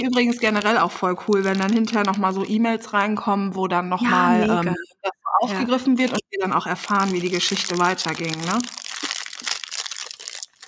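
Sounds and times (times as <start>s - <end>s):
speech: 0.0s - 8.8s
praline candy wrapper crinkling: 0.2s - 3.2s, 5.8s - 10.6s.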